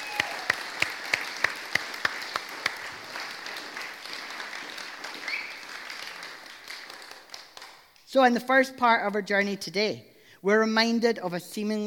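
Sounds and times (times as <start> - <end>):
audience applause: 0.0 - 7.9
speech: 8.1 - 11.8.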